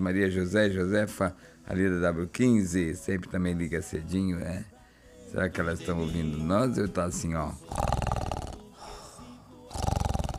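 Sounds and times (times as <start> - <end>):
speech: 0.0 - 8.0
imitated loud snoring: 7.6 - 8.8, 9.6 - 10.3.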